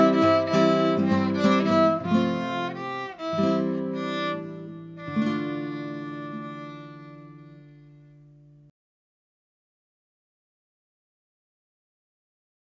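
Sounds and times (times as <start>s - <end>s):
Greek spring carol singing: 0.0s - 7.4s.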